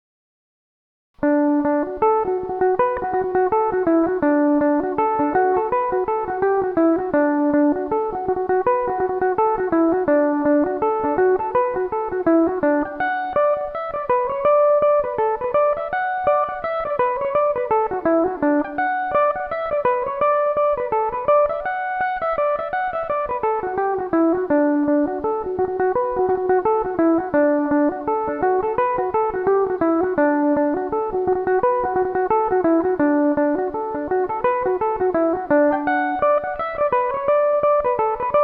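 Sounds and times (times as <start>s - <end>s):
mandolin in D major: 1.2s - 38.4s.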